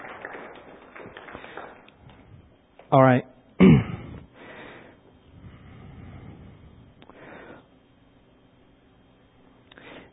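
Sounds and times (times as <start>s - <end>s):
audience clapping: 0.0s - 2.3s
speech: 2.9s - 3.3s.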